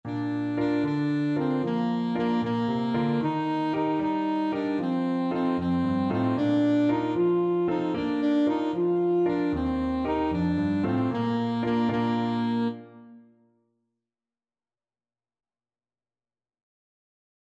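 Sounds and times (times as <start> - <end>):
saxophone: 0.0 - 13.2.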